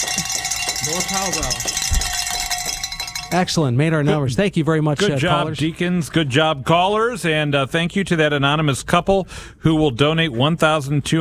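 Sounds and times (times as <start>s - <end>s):
bells ringing: 0.0s - 3.8s
speech: 0.8s - 2.2s, 3.3s - 11.1s.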